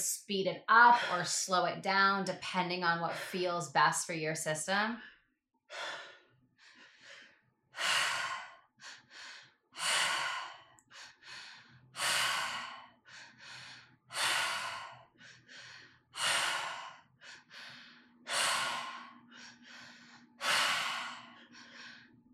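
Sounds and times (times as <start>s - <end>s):
speech: 0.0s - 5.1s, 5.7s - 6.0s
slow guided breathing in and out: 5.0s - 22.3s.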